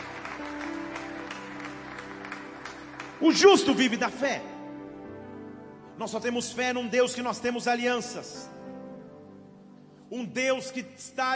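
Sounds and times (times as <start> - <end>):
audience clapping: 0.0 - 4.3
speech: 3.2 - 4.5, 6.0 - 8.6, 10.1 - 11.3.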